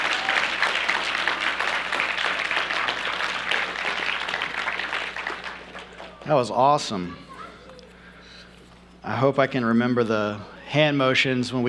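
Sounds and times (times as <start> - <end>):
audience applause: 0.0 - 8.1
speech: 6.3 - 7.3, 9.1 - 11.6.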